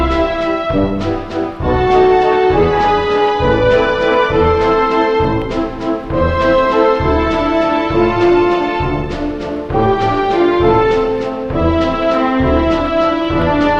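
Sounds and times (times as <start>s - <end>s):
waltz music: 0.0s - 13.7s.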